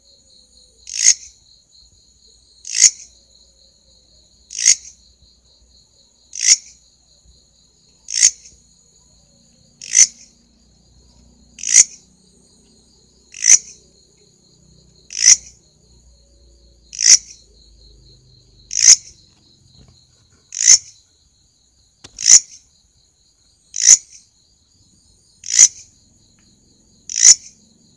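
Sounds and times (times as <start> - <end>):
grasshopper rasps: 0.8 - 1.4, 2.6 - 3.1, 4.5 - 5.0, 6.3 - 6.8, 8.0 - 8.6, 9.8 - 10.5, 11.1 - 12.1, 13.2 - 14.0, 14.9 - 15.6, 16.8 - 21.1, 22.0 - 22.7, 23.7 - 24.3, 25.4 - 25.9, 27.0 - 27.6.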